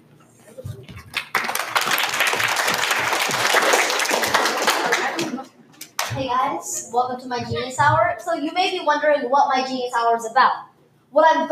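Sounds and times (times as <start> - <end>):
audience applause: 1.1 - 6.1
speech: 6.6 - 11.5.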